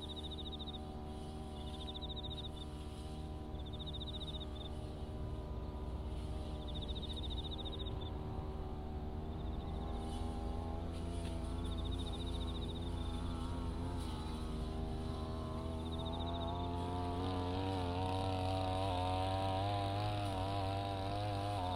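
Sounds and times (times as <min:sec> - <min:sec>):
autumn insects chirping: 0:00.0 - 0:05.0, 0:05.7 - 0:08.3, 0:09.2 - 0:10.7, 0:11.4 - 0:17.4
brush cutter droning between sweet potato rows: 0:00.0 - 0:21.7.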